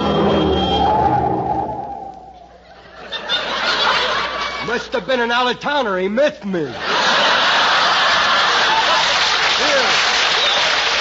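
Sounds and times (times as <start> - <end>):
car driving past on the road: 0.0 - 2.2
laughter: 2.5 - 5.1, 6.7 - 10.9
speech: 4.8 - 7.0.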